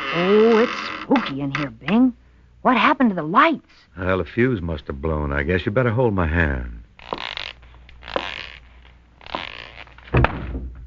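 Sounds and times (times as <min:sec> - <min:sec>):
speech: 0:00.1 - 0:06.8
bumping into an open closet door: 0:10.1 - 0:10.8.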